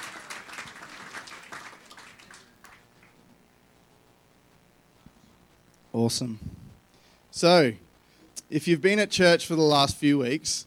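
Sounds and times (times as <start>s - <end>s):
audience applause: 0.0s - 3.2s
speech: 6.0s - 6.6s, 7.4s - 7.8s, 8.5s - 10.6s.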